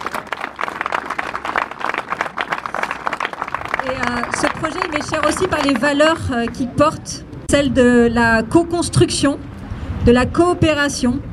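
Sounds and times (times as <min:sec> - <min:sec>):
audience applause: 0:00.0 - 0:06.2
speech: 0:03.9 - 0:11.3.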